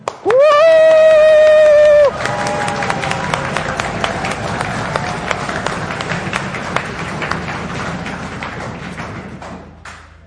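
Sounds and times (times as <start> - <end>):
audience clapping: 0.0 - 10.2
audience cheering: 0.1 - 9.0.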